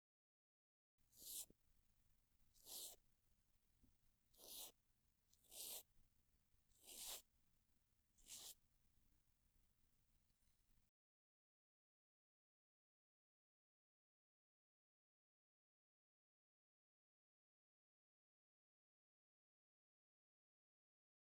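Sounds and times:
cotton swab brushing ear rim and earlobe on left side: 1.2s - 1.5s, 2.6s - 3.0s, 4.4s - 4.8s, 5.4s - 5.9s, 6.8s - 7.2s, 8.2s - 8.6s.

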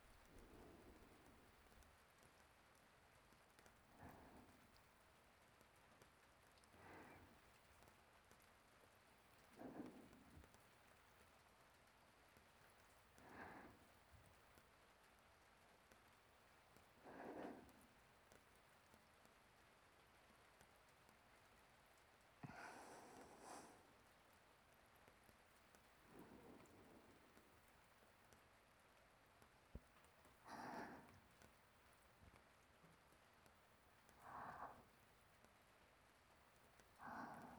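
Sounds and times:
sleeping breathing: 0.2s - 1.8s, 3.9s - 4.8s, 6.7s - 7.6s, 9.4s - 10.6s, 13.2s - 14.0s, 17.0s - 17.9s, 22.4s - 24.0s, 26.0s - 27.7s, 30.4s - 31.4s, 34.1s - 35.0s, 37.0s - 37.5s.

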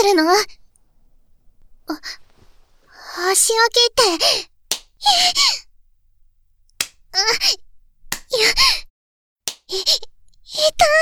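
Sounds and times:
speech: 0.2s - 0.6s, 1.9s - 2.2s, 3.2s - 5.7s, 7.1s - 7.6s, 8.3s - 8.8s, 9.7s - 10.9s
spanking slaps on the buttocks: 4.2s - 5.2s, 6.7s - 7.1s, 8.1s - 8.5s, 9.5s - 9.8s.

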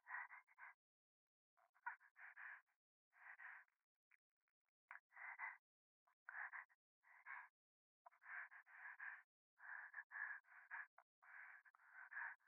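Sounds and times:
breathing in the right ear: 0.0s - 0.8s, 1.7s - 3.8s, 4.9s - 5.7s, 6.3s - 12.4s.

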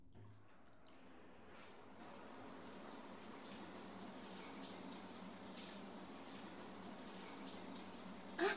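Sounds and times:
shower water rinsing hair: 0.9s - 8.5s.

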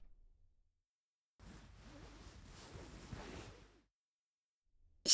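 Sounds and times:
relaxing ear cleaning sounds: 1.4s - 3.8s.

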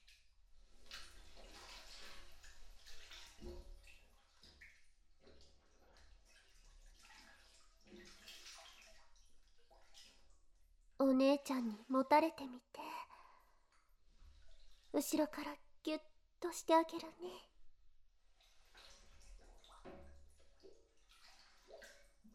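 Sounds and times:
hot bath water sloshing as someone sits down into the tub: 0.0s - 12.4s, 13.6s - 15.3s, 18.2s - 22.3s
bath water splashing and gurgling: 0.7s - 10.4s, 18.4s - 22.3s
speech: 11.9s - 12.8s, 15.1s - 17.5s.

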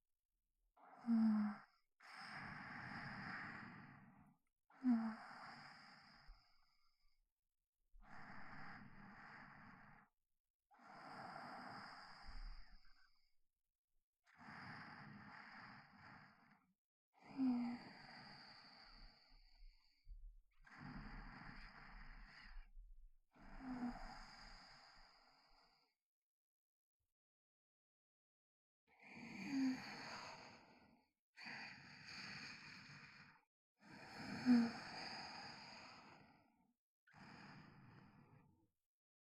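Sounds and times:
sleep breathing recorded with binaural microphone: 0.8s - 6.7s, 8.0s - 10.1s, 10.8s - 12.9s, 14.3s - 16.6s, 17.2s - 20.0s, 20.6s - 22.7s, 23.4s - 25.9s, 29.0s - 36.5s, 37.1s - 38.5s.

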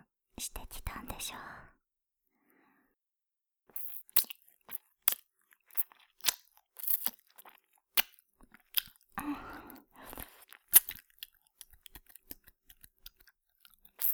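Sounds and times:
speech: 0.4s - 1.7s
wet ear licking mouth sounds: 3.8s - 9.0s, 10.1s - 12.1s.

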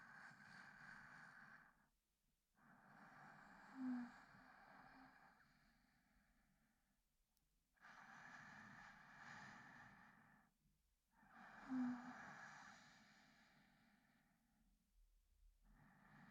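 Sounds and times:
sleep breathing recorded with binaural microphone: 0.0s - 1.8s, 2.7s - 6.3s, 7.8s - 10.5s, 11.2s - 14.4s, 15.7s - 16.2s.

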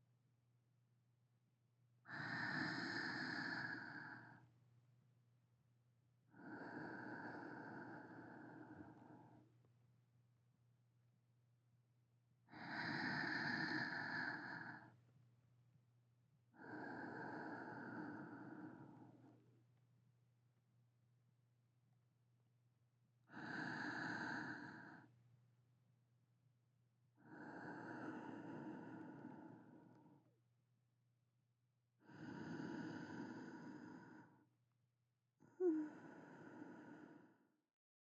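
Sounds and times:
sleeping breathing: 2.1s - 4.4s, 6.4s - 9.4s, 12.5s - 14.9s, 16.6s - 19.4s, 23.3s - 25.1s, 27.2s - 30.2s, 32.0s - 34.4s, 35.4s - 37.5s.

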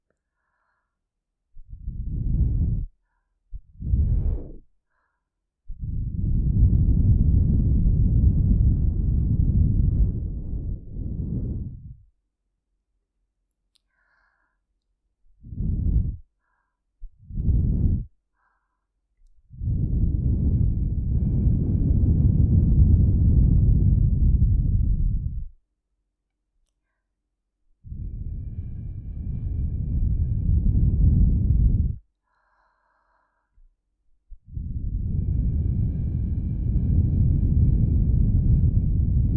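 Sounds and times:
blowing through a straw into ears: 1.7s - 3.0s, 3.6s - 4.7s, 5.8s - 12.0s, 15.4s - 16.3s, 17.0s - 18.1s, 19.5s - 25.6s, 27.9s - 32.0s, 34.5s - 39.3s.

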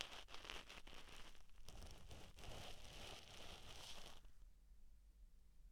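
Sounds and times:
ASMR right ear cleaning: 0.0s - 4.3s.

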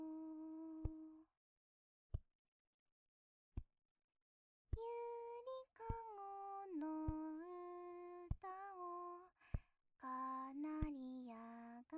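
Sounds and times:
lullaby: 0.0s - 1.3s, 4.8s - 11.9s.

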